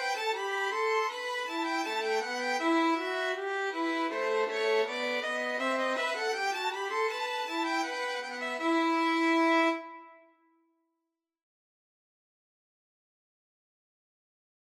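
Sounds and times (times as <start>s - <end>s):
violin trio playing a bourree: 0.0s - 9.9s.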